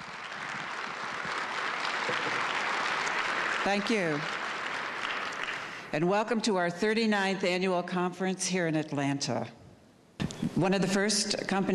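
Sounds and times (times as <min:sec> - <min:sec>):
audience applause: 0:00.0 - 0:05.9
speech: 0:03.6 - 0:04.4, 0:05.9 - 0:09.6, 0:10.6 - 0:11.7.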